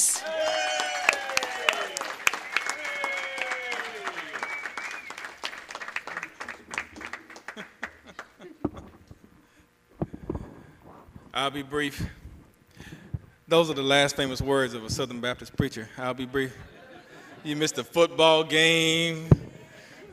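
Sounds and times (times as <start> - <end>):
audience applause welcoming a speaker: 0.2 - 8.4
laughter: 6.1 - 9.1, 16.2 - 18.0
speech: 11.4 - 12.2, 13.5 - 16.7, 17.4 - 19.4.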